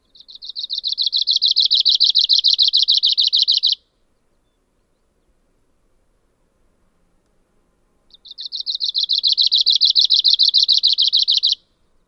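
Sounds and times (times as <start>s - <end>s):
bird song: 0.0s - 5.4s, 8.1s - 12.0s.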